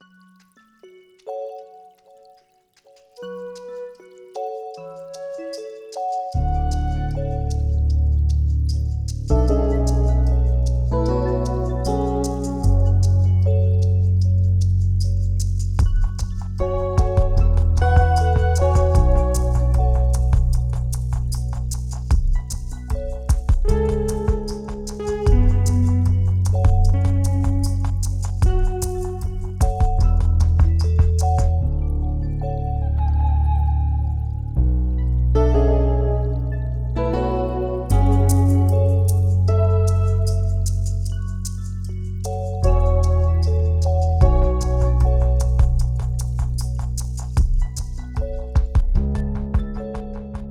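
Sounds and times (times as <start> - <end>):
calm music: 0.0 - 50.5.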